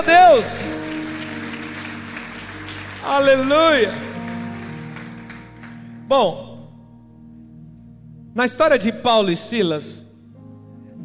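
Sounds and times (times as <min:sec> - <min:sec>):
speech: 0:00.0 - 0:00.7, 0:03.0 - 0:04.1, 0:06.1 - 0:06.5, 0:08.4 - 0:10.0
audience applauding: 0:00.6 - 0:06.1.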